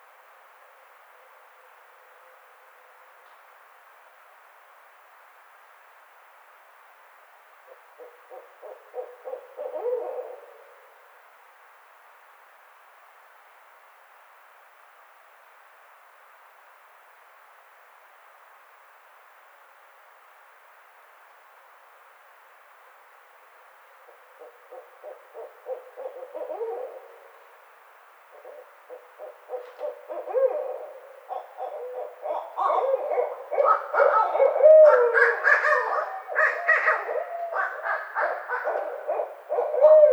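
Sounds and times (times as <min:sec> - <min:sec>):
Barred Owl calling: 0:07.7 - 0:10.9, 0:24.1 - 0:27.5, 0:28.3 - 0:40.1.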